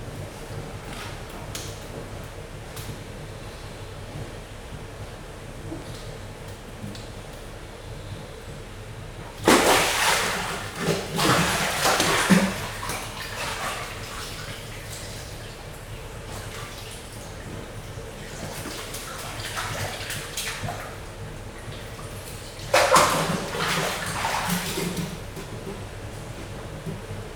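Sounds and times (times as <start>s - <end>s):
young African penguins splashing in water at a zoo: 9.4s - 25.6s.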